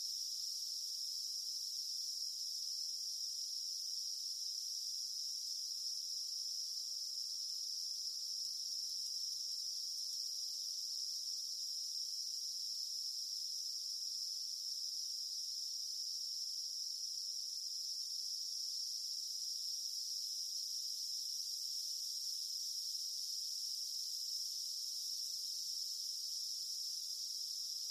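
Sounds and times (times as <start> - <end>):
cicadas in Montana: 0.0 - 27.9.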